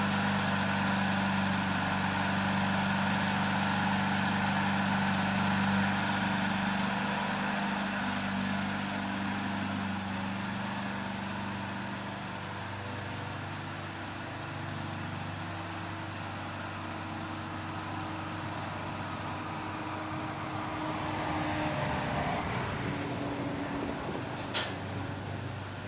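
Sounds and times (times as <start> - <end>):
gas lawn mower starting and running: 0.0 - 25.8.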